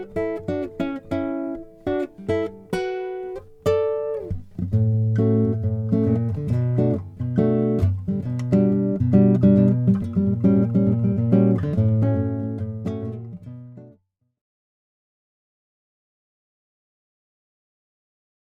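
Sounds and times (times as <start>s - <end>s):
Lowden S35 acoustic guitar: 0.0s - 14.0s.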